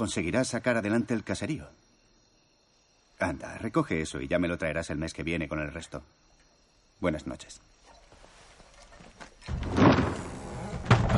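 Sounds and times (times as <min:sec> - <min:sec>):
speech: 0:00.0 - 0:01.8, 0:03.2 - 0:06.3, 0:07.0 - 0:07.7
door being shut: 0:09.4 - 0:11.1.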